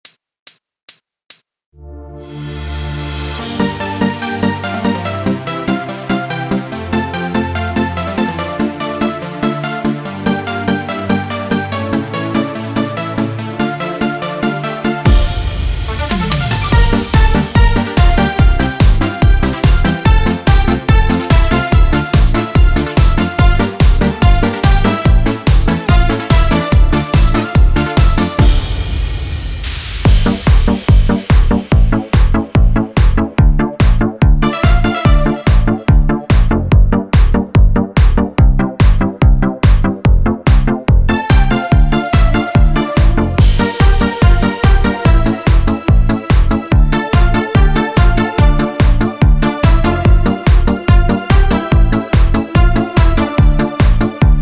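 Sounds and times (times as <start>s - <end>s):
Yamaha MIDI music: 1.8s - 54.4s.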